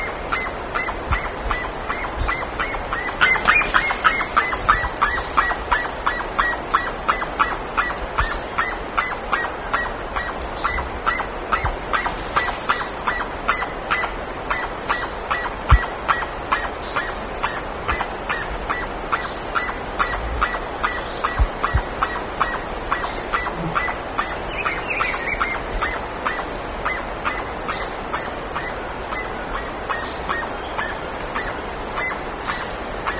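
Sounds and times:
constant hiss: 0.0s - 33.1s
other birds high calls: 0.0s - 33.1s.

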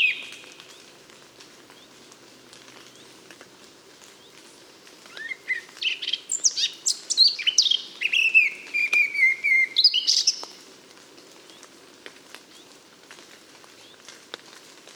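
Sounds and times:
Eurasian blackcap singing: 0.0s - 0.5s, 5.1s - 10.5s.

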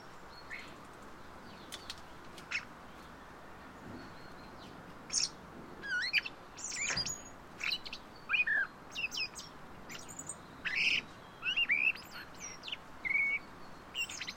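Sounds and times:
common blackbird whistled song: 4.0s - 14.3s.

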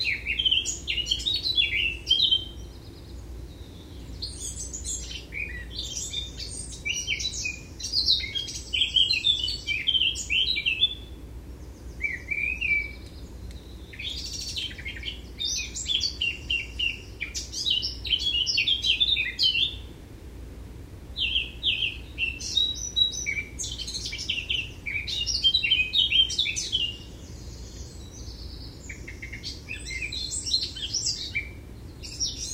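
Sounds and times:
Eurasian blackcap singing: 0.0s - 19.9s, 21.2s - 32.5s.

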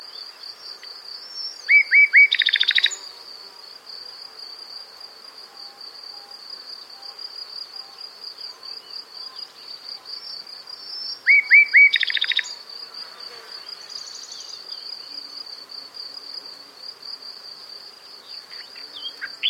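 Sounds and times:
high insect hum: 0.0s - 19.4s
common nightingale singing: 1.3s - 3.0s, 10.2s - 12.6s, 18.3s - 19.4s.

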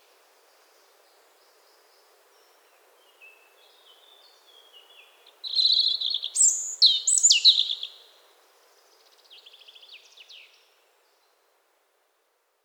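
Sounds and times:
European robin singing: 5.4s - 8.0s.

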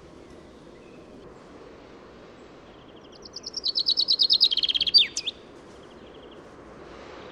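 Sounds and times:
Common chaffinch Fringilla coelebs singing: 2.7s - 6.4s.

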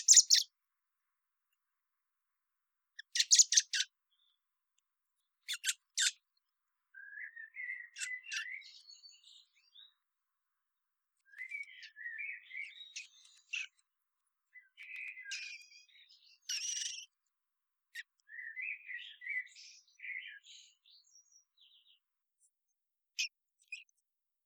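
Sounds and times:
common blackbird song: 0.0s - 0.6s, 3.0s - 4.4s, 5.2s - 10.1s, 11.2s - 17.2s, 17.9s - 22.1s.

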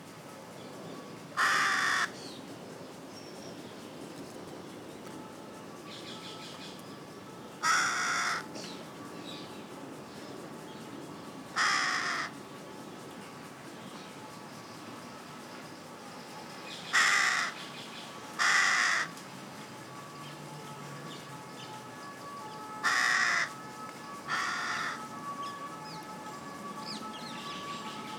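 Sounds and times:
Carrion crow Corvus corone giving harsh caws: 1.4s - 2.1s, 7.6s - 8.5s, 11.6s - 12.3s, 16.9s - 17.6s, 18.4s - 19.1s, 22.8s - 23.6s, 24.3s - 25.1s.

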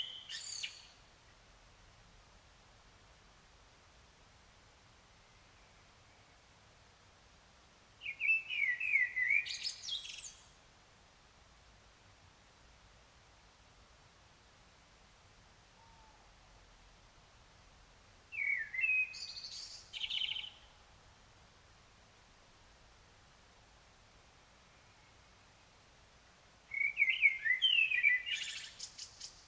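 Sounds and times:
common blackbird singing: 0.0s - 1.0s, 8.0s - 10.5s, 18.3s - 20.7s, 26.7s - 29.4s
faint hiss: 0.0s - 29.4s.

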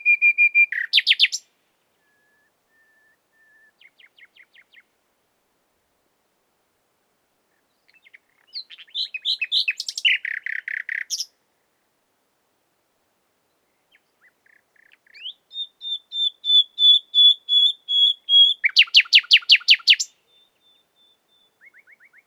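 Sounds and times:
common nightingale Luscinia megarhynchos singing: 0.0s - 4.9s, 7.5s - 11.4s, 13.6s - 22.2s.

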